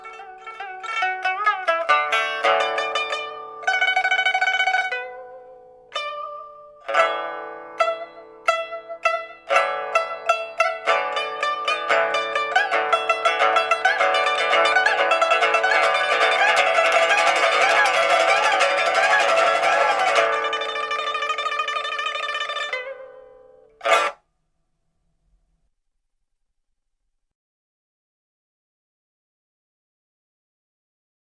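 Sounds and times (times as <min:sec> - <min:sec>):
pipa: 0:00.0 - 0:24.2.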